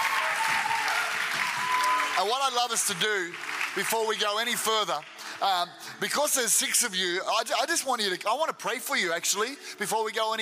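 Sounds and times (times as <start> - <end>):
church audience clapping: 0.0 - 6.6
speech: 2.2 - 10.4.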